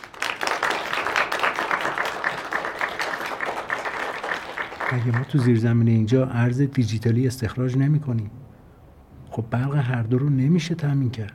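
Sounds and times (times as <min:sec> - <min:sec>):
audience clapping: 0:00.0 - 0:05.8
speech: 0:04.9 - 0:08.4, 0:09.4 - 0:11.3.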